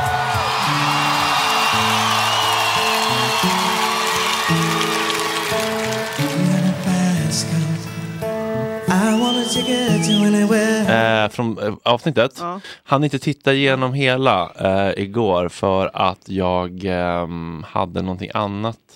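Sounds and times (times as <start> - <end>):
audience whooping: 0.0 - 7.5, 8.9 - 10.6
studio audience applause: 0.0 - 7.6
bouncy musical theme: 0.0 - 11.3
speech: 11.2 - 18.9.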